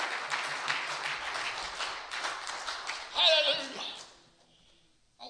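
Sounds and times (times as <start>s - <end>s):
audience clapping in praise: 0.0s - 4.2s.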